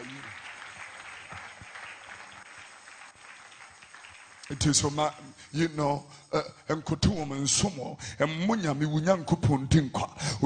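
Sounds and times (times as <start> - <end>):
audience clapping hands: 0.0 - 5.7
speech: 4.5 - 10.4.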